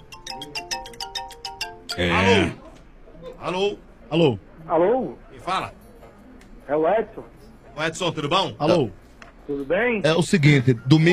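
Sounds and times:
telephone ringing: 0.0s - 2.5s
speech: 1.9s - 2.6s, 3.4s - 5.8s, 6.7s - 11.1s.

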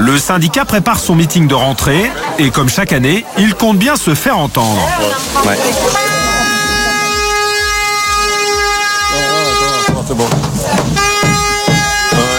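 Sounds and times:
speech: 0.1s - 6.2s
air horn blaring as a test by trade unionists preparing their rally: 5.8s - 10.1s, 10.9s - 12.3s.

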